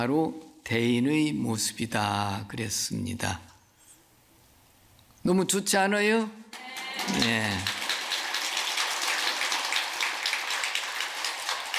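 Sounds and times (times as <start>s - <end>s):
speech: 0.0s - 3.5s, 5.2s - 7.8s
audience applause: 6.6s - 11.7s.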